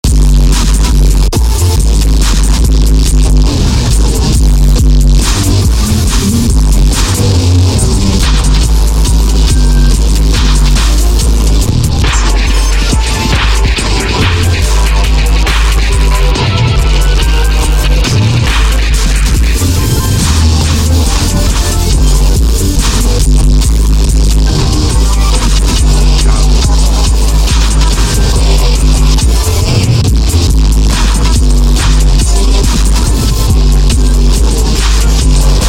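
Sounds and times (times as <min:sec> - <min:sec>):
noise: 0:00.0 - 0:35.6.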